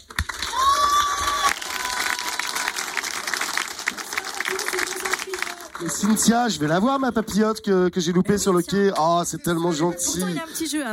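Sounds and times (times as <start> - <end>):
applause: 0.0 - 6.6
speech: 5.8 - 10.9.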